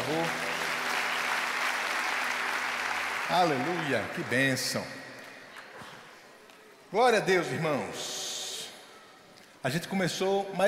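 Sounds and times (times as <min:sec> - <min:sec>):
audience applause for the choir: 0:00.0 - 0:04.7
speech: 0:03.3 - 0:05.0, 0:06.9 - 0:08.2, 0:09.6 - 0:10.6.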